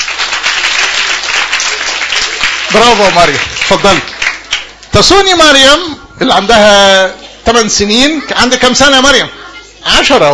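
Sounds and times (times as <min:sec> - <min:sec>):
children applauding in a lesson: 0:00.0 - 0:04.9
speech: 0:02.8 - 0:04.2, 0:04.9 - 0:10.3.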